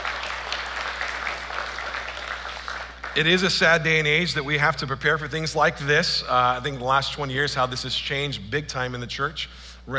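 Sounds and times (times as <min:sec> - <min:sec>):
audience applause: 0:00.0 - 0:03.4
speech: 0:03.2 - 0:09.9.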